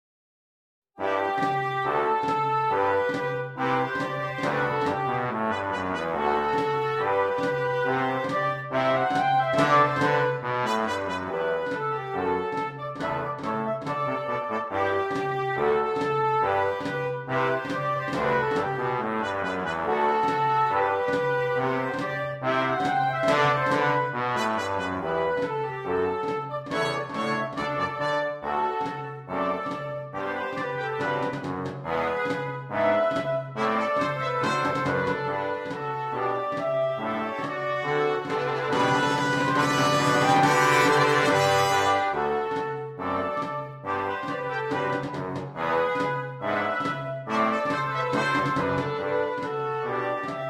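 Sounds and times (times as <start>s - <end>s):
march played by a military oboist corps: 1.0s - 50.4s.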